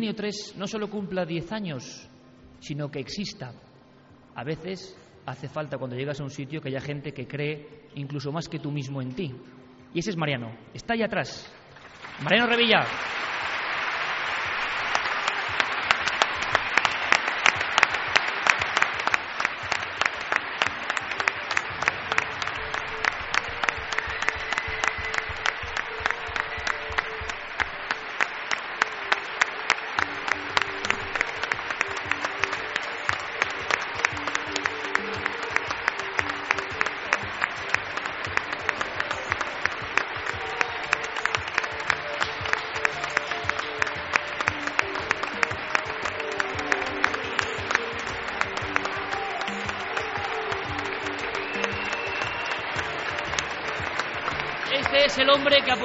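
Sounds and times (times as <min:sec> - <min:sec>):
speech: 0:00.0 - 0:03.7, 0:04.4 - 0:13.3
audience applause: 0:11.8 - 0:55.8.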